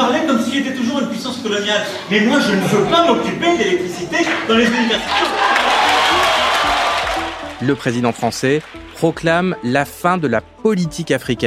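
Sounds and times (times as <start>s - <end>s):
speech: 0.6s - 5.7s, 7.6s - 11.4s
faint voices and cheers: 4.3s - 8.3s
audience applause after speech: 4.4s - 9.1s.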